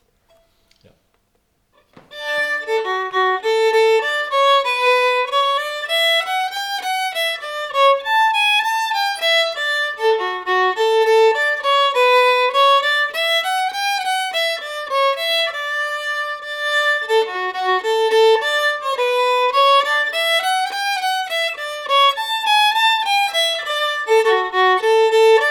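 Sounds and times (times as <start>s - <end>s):
folk polska tune: 2.0s - 25.5s.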